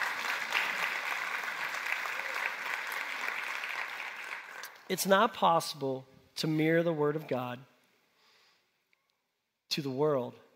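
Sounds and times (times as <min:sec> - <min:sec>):
audience clapping: 0:00.0 - 0:04.9
speech: 0:04.9 - 0:07.7, 0:09.8 - 0:10.4.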